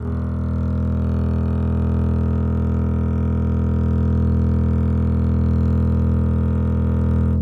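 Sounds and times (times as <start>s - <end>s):
test bass tone: 0.0s - 7.4s.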